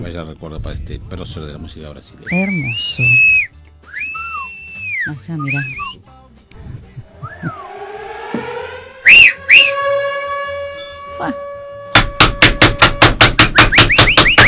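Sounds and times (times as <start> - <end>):
speech: 0.0 - 3.3, 5.0 - 6.1, 11.2 - 11.5
siren wailing: 6.6 - 13.1, 13.7 - 14.4.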